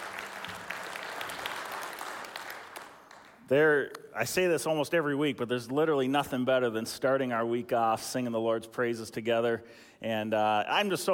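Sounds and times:
audience applause: 0.0s - 3.4s
speech: 3.5s - 11.1s.

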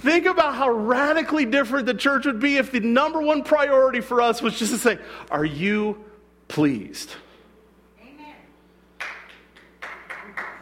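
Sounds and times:
speech: 0.0s - 7.2s
audience clapping: 9.0s - 10.6s.

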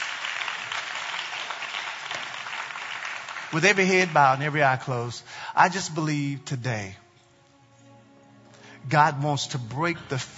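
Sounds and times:
crowd clapping: 0.0s - 5.2s
speech: 3.5s - 7.0s, 8.9s - 10.3s.

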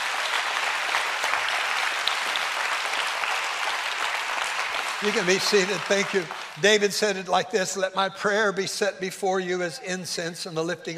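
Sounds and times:
audience applause: 0.0s - 7.2s
speech: 5.0s - 10.9s.

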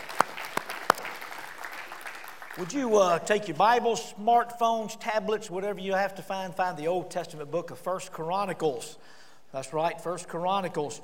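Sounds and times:
audience applause: 0.0s - 3.2s
speech: 2.6s - 11.0s.

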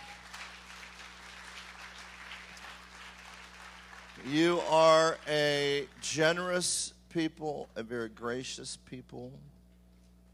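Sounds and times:
church audience clapping: 0.0s - 6.6s
speech: 4.2s - 9.5s.

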